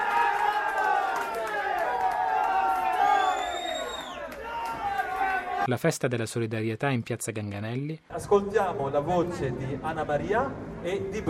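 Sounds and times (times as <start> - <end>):
football fans cheering in bars: 0.0 - 5.7
high whistle-like whoop: 2.6 - 4.8
speech: 5.6 - 11.2.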